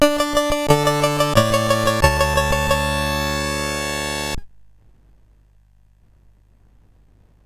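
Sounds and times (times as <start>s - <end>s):
SID CSG8580R5 chip music: 0.0s - 4.4s.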